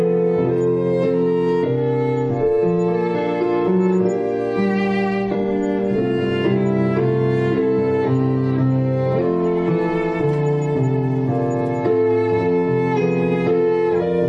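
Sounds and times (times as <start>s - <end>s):
piano in a prelude: 0.0s - 14.2s
violin in a prelude: 0.0s - 14.2s.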